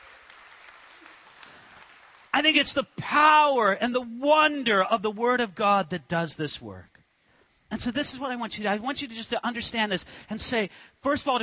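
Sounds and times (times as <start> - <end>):
audience clapping: 0.0 - 2.4
speech: 2.4 - 6.9, 7.7 - 11.4.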